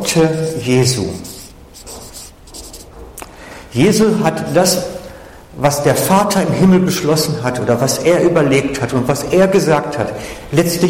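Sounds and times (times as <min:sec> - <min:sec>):
speech: 0:00.1 - 0:01.3, 0:03.7 - 0:05.0, 0:05.6 - 0:10.8
handwriting strokes writing words into a drawn speech bubble: 0:00.5 - 0:03.0.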